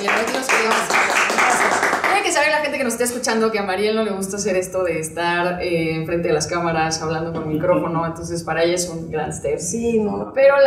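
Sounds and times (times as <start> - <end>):
audience applause: 0.0 - 2.2
speech: 2.8 - 10.6
laughter: 7.4 - 8.1.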